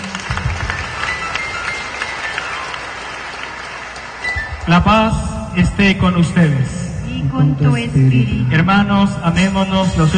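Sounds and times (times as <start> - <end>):
audience clapping loudly: 0.0 - 5.1
speech: 4.7 - 10.1.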